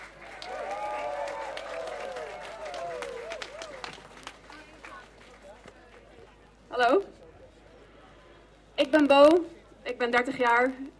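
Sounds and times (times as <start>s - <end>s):
audience applause: 0.0s - 6.3s
speech: 6.8s - 7.1s, 8.9s - 10.9s.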